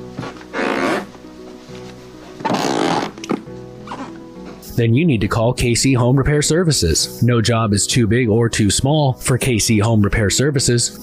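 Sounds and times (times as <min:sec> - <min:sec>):
squeaky floorboards: 0:00.1 - 0:01.2, 0:02.4 - 0:04.2
speech: 0:04.8 - 0:11.0.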